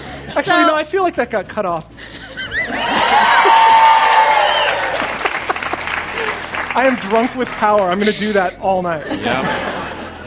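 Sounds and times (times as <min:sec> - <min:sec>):
speech: 0:00.4 - 0:02.2, 0:06.8 - 0:09.7
laughter: 0:02.0 - 0:10.2
whoops and high shouts: 0:02.7 - 0:05.1
crowd cheering and applauding sound effect: 0:02.7 - 0:08.2.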